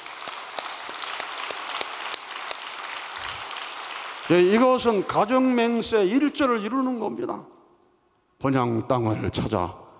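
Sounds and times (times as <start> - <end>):
audience applause: 0.0 - 4.6
speech: 4.3 - 7.5, 8.4 - 9.8.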